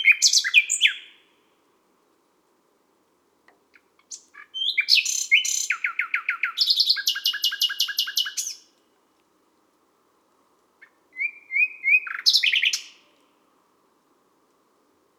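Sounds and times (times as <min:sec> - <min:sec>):
common nightingale singing at midnight in Les Salelles, Ardeche: 0:00.0 - 0:01.3, 0:03.8 - 0:08.8, 0:10.8 - 0:13.3.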